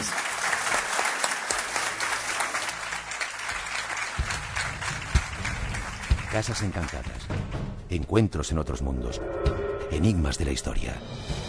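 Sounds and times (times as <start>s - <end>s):
audience applause: 0.0s - 7.4s
speech: 6.3s - 11.4s.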